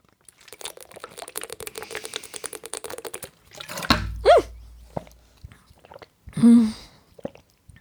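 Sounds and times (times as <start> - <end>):
bottle bumping against microphone: 3.7 - 5.3.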